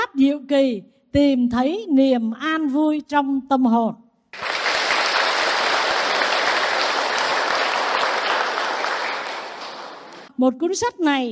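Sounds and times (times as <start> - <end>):
speech: 0.2 - 4.0, 10.4 - 11.3
audience applause: 4.4 - 10.3.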